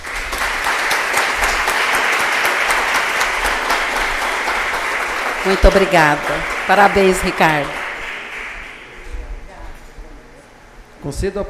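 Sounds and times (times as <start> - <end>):
audience applause: 0.0 - 9.1
speech: 5.5 - 7.8, 11.0 - 11.4.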